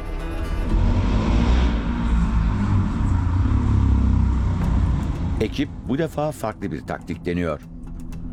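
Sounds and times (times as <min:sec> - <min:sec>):
loud motorcycle engine: 0:00.0 - 0:06.0
speech: 0:05.4 - 0:07.7.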